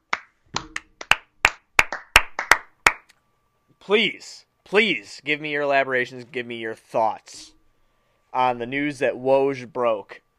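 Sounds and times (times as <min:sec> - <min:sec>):
round of applause hand clapping: 0:00.0 - 0:03.2
speech: 0:03.8 - 0:07.6, 0:08.3 - 0:10.2.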